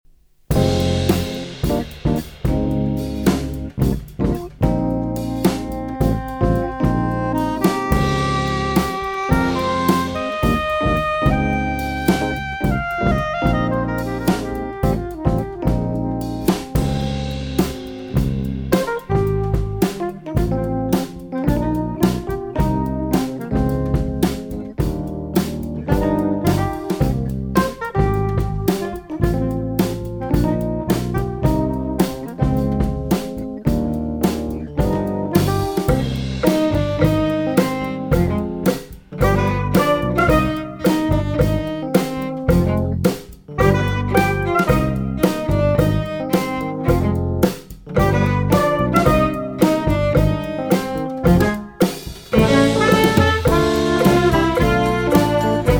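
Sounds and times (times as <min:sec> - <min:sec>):
funky spring tune: 0:00.5 - 0:55.7.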